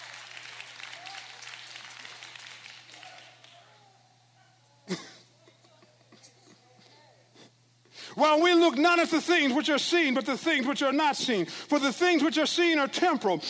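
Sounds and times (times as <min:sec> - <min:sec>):
audience clapping hands: 0:00.0 - 0:03.8
speech: 0:08.2 - 0:13.4.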